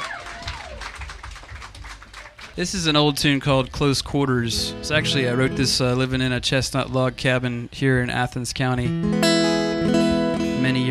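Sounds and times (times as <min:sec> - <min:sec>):
audience applause: 0:00.0 - 0:02.6
speech: 0:02.6 - 0:09.4, 0:10.6 - 0:10.8.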